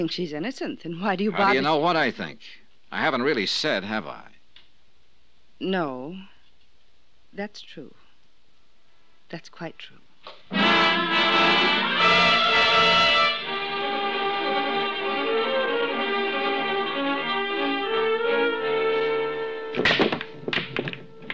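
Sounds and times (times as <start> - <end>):
speech: 0.0 - 4.3, 5.6 - 6.3, 7.3 - 8.0, 9.3 - 11.7
music: 10.5 - 21.3
billiard balls struck on the break shot: 19.7 - 21.3.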